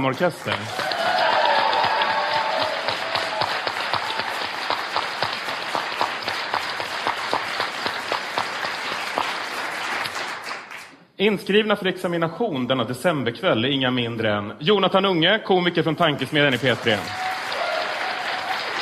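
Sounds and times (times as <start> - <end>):
speech: 0.0 - 1.0, 11.2 - 17.2
audience applause: 0.0 - 10.9, 16.4 - 18.8.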